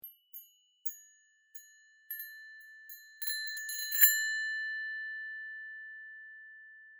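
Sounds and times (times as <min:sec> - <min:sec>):
carillon bells: 0:01.6 - 0:05.4.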